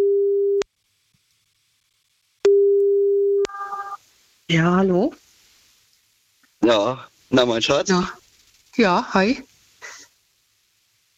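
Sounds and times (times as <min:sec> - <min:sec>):
telephone ringing tone while placing a call: 0:02.5 - 0:04.0
speech: 0:04.5 - 0:05.2, 0:06.6 - 0:08.2, 0:08.8 - 0:09.5.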